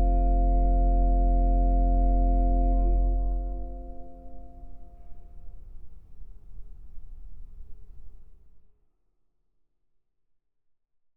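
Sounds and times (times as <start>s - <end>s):
organ sonata playing: 0.0s - 4.8s.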